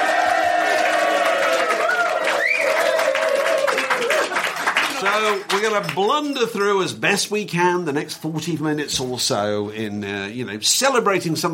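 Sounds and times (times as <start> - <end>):
whoops and shouted cheers: 0.0 - 4.4
live pub audience clapping: 0.0 - 6.1
speech: 5.1 - 11.5.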